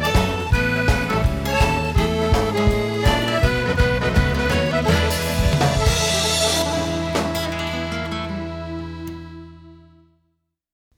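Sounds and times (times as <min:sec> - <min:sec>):
cajon drumming: 0:00.0 - 0:08.3.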